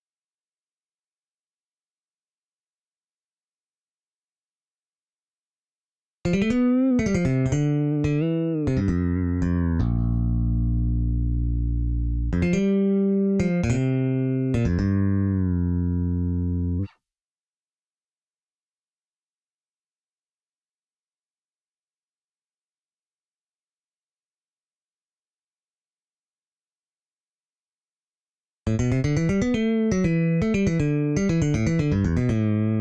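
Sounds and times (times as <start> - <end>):
fretless bass: 6.2 - 16.9, 28.7 - 32.7.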